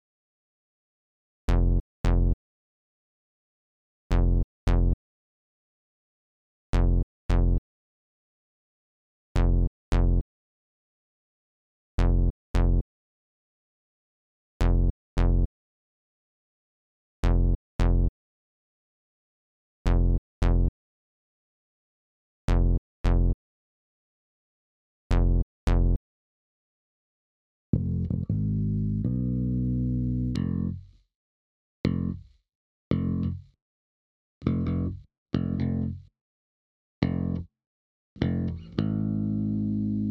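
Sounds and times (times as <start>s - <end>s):
bass: 1.5s - 2.4s, 4.1s - 5.0s, 6.8s - 7.6s, 9.4s - 10.2s, 12.0s - 12.9s, 14.6s - 15.5s, 17.2s - 18.1s, 19.9s - 20.7s, 22.5s - 23.4s, 25.1s - 26.0s, 27.7s - 31.1s, 31.8s - 33.6s, 34.4s - 36.1s, 37.0s - 37.5s, 38.2s - 40.0s.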